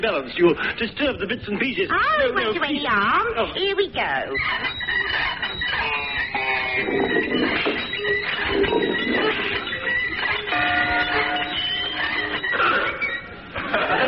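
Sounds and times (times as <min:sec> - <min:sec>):
speech: 0:00.0 - 0:06.0, 0:06.8 - 0:09.4
hand-cranked mangle contraption being turned: 0:04.4 - 0:13.3
whistling bell-like tones: 0:04.4 - 0:13.4
laughter: 0:13.5 - 0:14.0.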